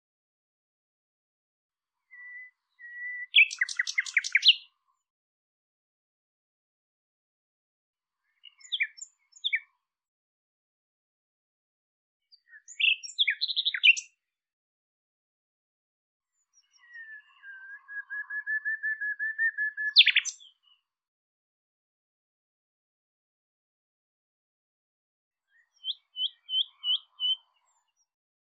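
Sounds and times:
bird singing: 0:02.1 - 0:04.8, 0:08.3 - 0:09.8, 0:12.3 - 0:14.2, 0:16.4 - 0:20.8, 0:25.5 - 0:28.1.

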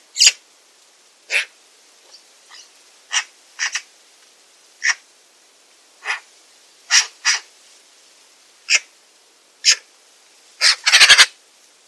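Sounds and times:
bird calls with brief high sharp notes: 0:00.2 - 0:00.4, 0:02.1 - 0:03.9, 0:04.8 - 0:05.0, 0:06.9 - 0:07.5, 0:10.6 - 0:11.3.

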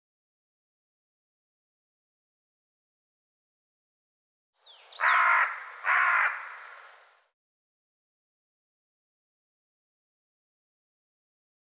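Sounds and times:
bird cawing: 0:04.9 - 0:06.9.

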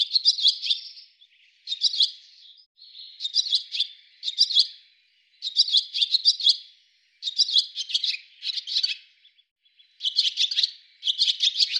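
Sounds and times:
bird twittering in rapid clicking high notes: 0:00.0 - 0:11.7.

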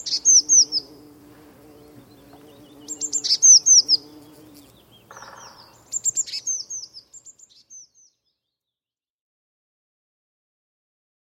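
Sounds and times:
Eurasian blue tit uttering high falling notes: 0:00.0 - 0:08.1.

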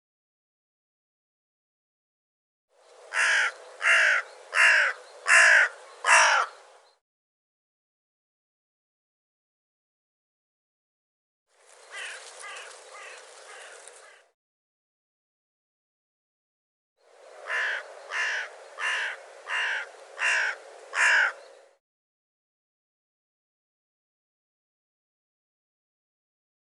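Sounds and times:
bird giving harsh caws: 0:03.1 - 0:06.6, 0:11.8 - 0:14.4, 0:17.4 - 0:21.6.

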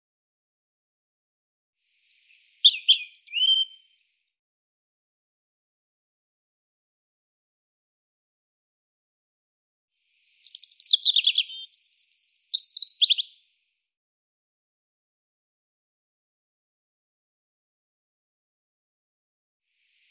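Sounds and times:
European robin song: 0:01.9 - 0:04.4, 0:10.2 - 0:13.6, 0:20.0 - 0:20.1.

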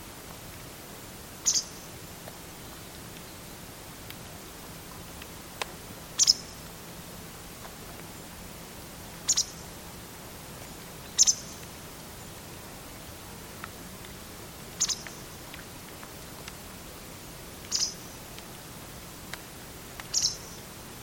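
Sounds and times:
hiss: 0:00.0 - 0:21.0
bird chirping: 0:01.4 - 0:01.8, 0:06.2 - 0:06.6, 0:09.3 - 0:09.6, 0:11.1 - 0:11.6, 0:14.8 - 0:15.2, 0:17.7 - 0:18.0, 0:20.1 - 0:20.6.

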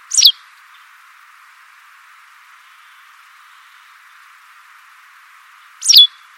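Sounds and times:
white wagtail call: 0:00.1 - 0:00.3, 0:05.8 - 0:06.3.

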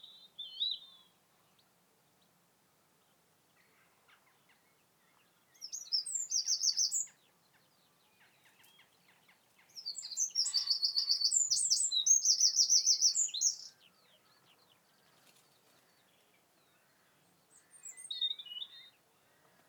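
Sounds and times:
Eurasian wren Troglodytes troglodytes singing: 0:04.1 - 0:19.4.

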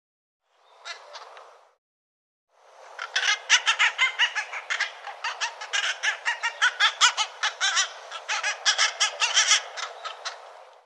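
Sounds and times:
bird giving harsh hoarse rasping caws: 0:03.0 - 0:10.5.

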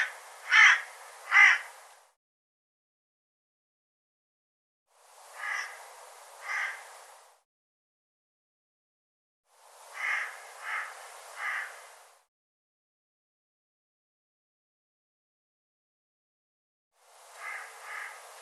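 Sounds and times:
bird harsh calls: 0:00.0 - 0:01.7, 0:05.4 - 0:05.8, 0:06.4 - 0:06.8, 0:10.0 - 0:11.8, 0:17.4 - 0:18.2.

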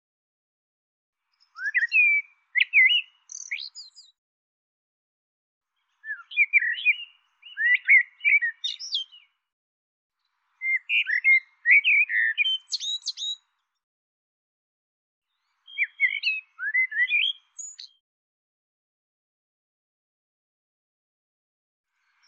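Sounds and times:
bird chirping: 0:01.3 - 0:04.2, 0:05.8 - 0:09.4, 0:10.2 - 0:13.8, 0:15.3 - 0:18.0.

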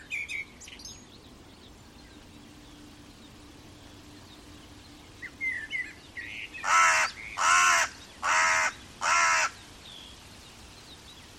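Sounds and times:
bird giving loud harsh crow-like caws: 0:06.3 - 0:09.6.

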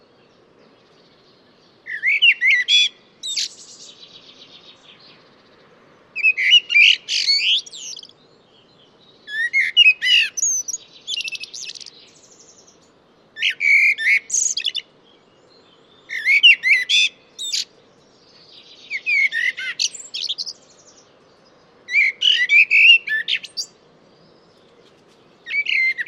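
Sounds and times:
bird song of quick varied whistled notes with sharp chirps and buzzy elements: 0:00.0 - 0:26.0.

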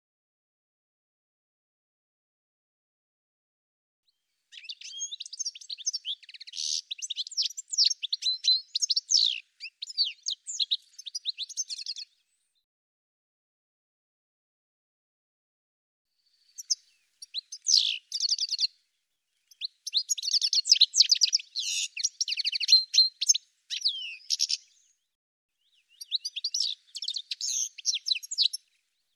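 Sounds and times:
bird singing: 0:04.5 - 0:12.6, 0:16.2 - 0:18.8, 0:19.4 - 0:29.1.

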